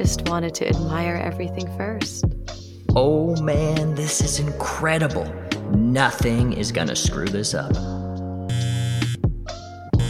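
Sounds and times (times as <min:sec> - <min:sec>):
speech: 0:00.0 - 0:02.3, 0:02.9 - 0:08.0
mobile phone buzzing: 0:08.5 - 0:09.2.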